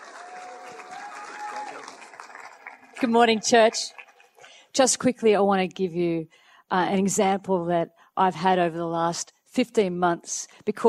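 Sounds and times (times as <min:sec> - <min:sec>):
church congregation applauding: 0:00.0 - 0:04.6
speech: 0:03.0 - 0:04.0, 0:04.8 - 0:10.8.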